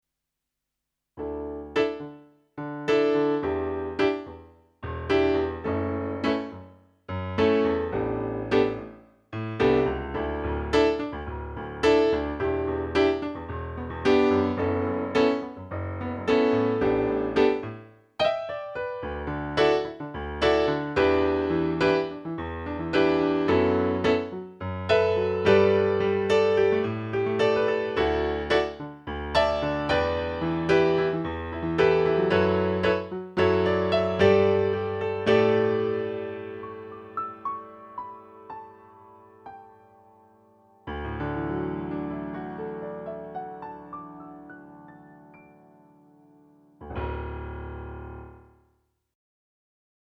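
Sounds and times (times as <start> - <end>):
HP504 concert grand piano: 1.2 - 48.6.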